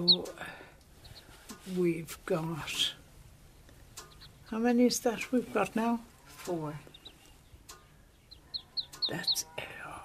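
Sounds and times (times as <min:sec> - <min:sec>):
fluffy ducklings peeping: 0:00.0 - 0:01.6, 0:03.5 - 0:09.9
speech: 0:01.7 - 0:03.0, 0:04.5 - 0:06.9, 0:09.1 - 0:09.6.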